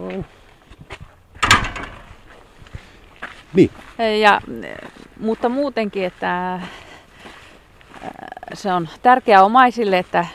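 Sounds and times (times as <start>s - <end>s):
speech: 0.1s - 0.9s, 3.5s - 6.8s, 8.0s - 10.3s
churchyard gate pulled open: 1.4s - 2.2s.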